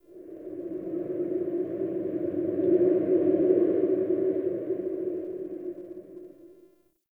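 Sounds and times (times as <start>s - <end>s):
wind howling under a city: 0.0s - 6.7s.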